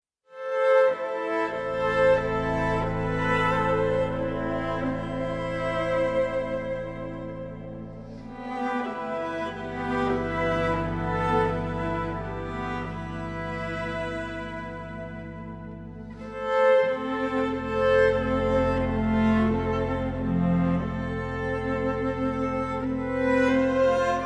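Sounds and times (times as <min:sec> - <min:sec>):
night exploration strings: 0:00.3 - 0:24.2.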